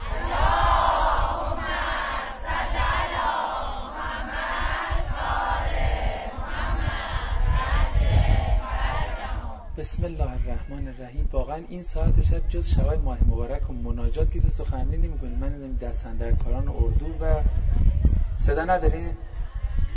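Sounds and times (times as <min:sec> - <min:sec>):
large crowd chanting salawat in unison at a night camp gathering: 0:00.0 - 0:09.8
speech: 0:10.0 - 0:17.8, 0:18.4 - 0:19.3.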